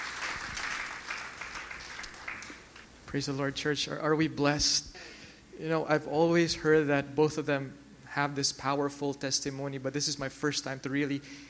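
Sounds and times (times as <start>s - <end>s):
audience clapping: 0.0s - 2.9s
speech: 3.1s - 11.4s.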